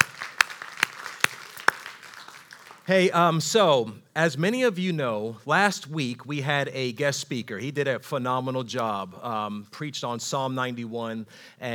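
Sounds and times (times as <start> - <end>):
church congregation clapping to welcome online viewers: 0.0 - 3.3
speech: 2.9 - 11.7.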